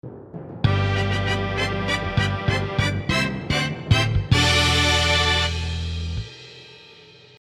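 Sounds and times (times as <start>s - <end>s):
jingle: 0.7s - 6.2s.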